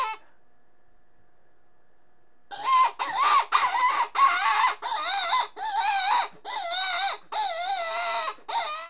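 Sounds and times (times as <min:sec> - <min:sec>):
rabbit squealing: 0:00.0 - 0:00.2, 0:02.5 - 0:08.8.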